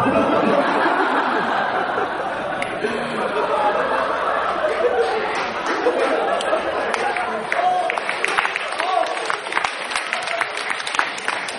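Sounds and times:
laughter: 0:00.0 - 0:11.5
audience clapping: 0:03.8 - 0:11.5.

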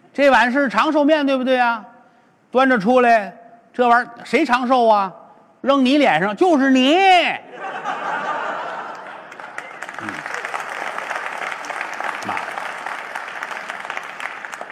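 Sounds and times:
speech: 0:00.2 - 0:01.9, 0:02.5 - 0:07.9
audience laughter: 0:07.5 - 0:10.5
audience applause: 0:08.7 - 0:14.7.

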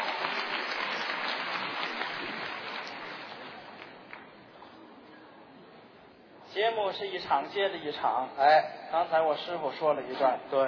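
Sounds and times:
large audience applause welcoming performers: 0:00.0 - 0:04.2
speech: 0:06.6 - 0:10.6.

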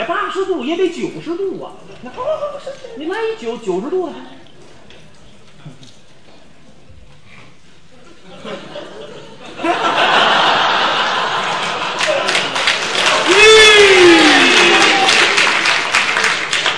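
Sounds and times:
speech: 0:00.3 - 0:04.4
laughter: 0:07.9 - 0:15.1
audience applause: 0:10.0 - 0:16.7.

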